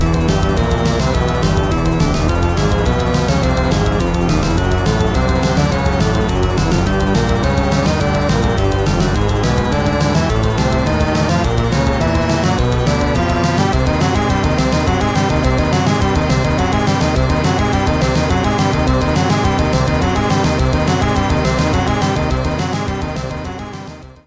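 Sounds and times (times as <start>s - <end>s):
pinball multiball restart sound effect: 0.0s - 24.2s.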